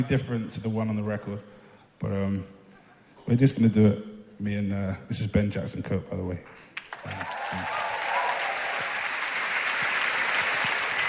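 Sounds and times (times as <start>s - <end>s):
speech: 0.0s - 2.6s, 3.2s - 7.8s
audience clapping: 6.4s - 11.0s.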